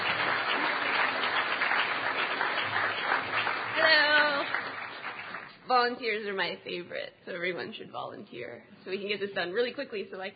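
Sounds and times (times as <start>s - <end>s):
audience applause: 0.0s - 5.6s
speech: 5.8s - 10.3s.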